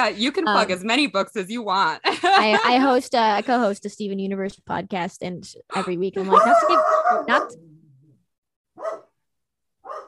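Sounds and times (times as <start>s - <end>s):
speech: 0.0s - 7.7s
dog barking: 6.3s - 7.6s, 8.7s - 9.2s, 9.8s - 10.0s.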